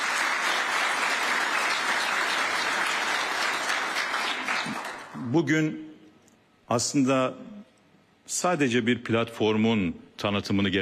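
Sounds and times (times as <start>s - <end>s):
audience applause: 0.0s - 5.2s
speech: 5.3s - 5.9s, 6.7s - 7.5s, 8.3s - 10.8s.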